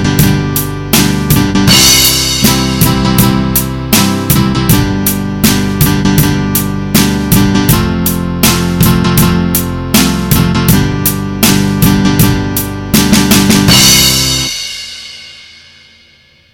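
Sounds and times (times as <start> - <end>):
guitar jam track in C major: 0.0 - 14.6.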